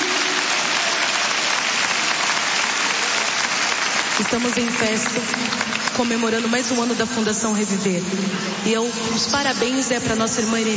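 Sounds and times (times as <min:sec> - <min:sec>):
church audience applause: 0:00.0 - 0:06.1
speech: 0:04.2 - 0:10.7.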